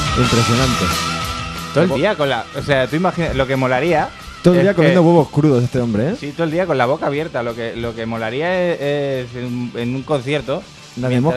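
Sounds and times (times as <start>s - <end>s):
speech: 0.2s - 1.1s, 1.7s - 11.3s
man yelling: 4.5s - 5.1s.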